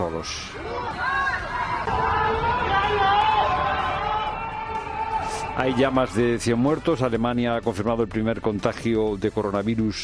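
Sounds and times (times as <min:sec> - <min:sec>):
neighbors shouting between skyscrapers: 0:00.0 - 0:06.8
speech: 0:00.1 - 0:01.2, 0:05.6 - 0:10.0.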